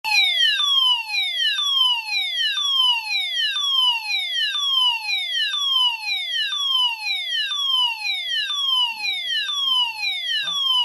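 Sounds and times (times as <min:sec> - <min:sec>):
fire alarm: 0:00.0 - 0:10.8.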